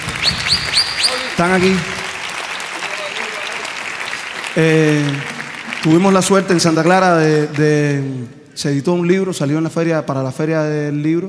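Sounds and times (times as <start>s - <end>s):
audience applause: 0.0s - 8.2s
speech: 0.2s - 2.0s, 4.5s - 11.2s.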